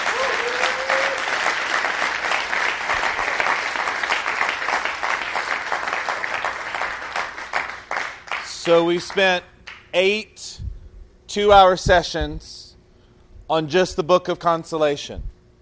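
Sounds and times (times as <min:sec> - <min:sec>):
audience applause: 0:00.0 - 0:08.5
speech: 0:08.7 - 0:10.6, 0:11.3 - 0:12.6, 0:13.5 - 0:15.3.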